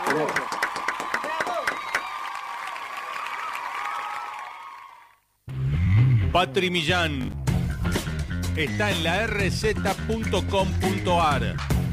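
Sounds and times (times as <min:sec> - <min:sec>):
applause: 0:00.0 - 0:05.2
speech: 0:00.1 - 0:00.6, 0:06.3 - 0:08.0, 0:08.6 - 0:11.8.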